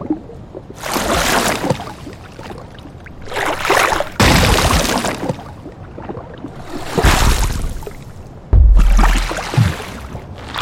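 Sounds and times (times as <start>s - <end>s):
designed water gurgles and splashes: 0.0s - 10.6s
heavy low thump: 8.5s - 9.8s.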